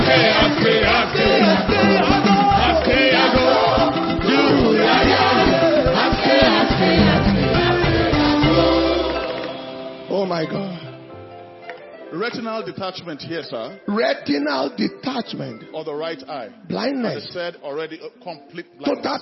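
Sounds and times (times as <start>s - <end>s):
church congregation shouting and cheering in praise to the Lord: 0.0s - 10.0s
speech: 0.1s - 3.1s, 10.3s - 10.7s, 12.2s - 19.2s.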